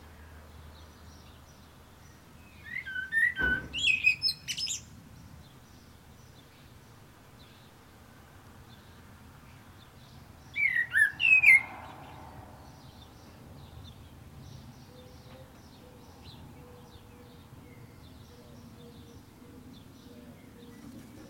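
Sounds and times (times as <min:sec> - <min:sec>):
Common blackbird singing fluty whistles: 0:02.6 - 0:04.9, 0:10.5 - 0:11.7.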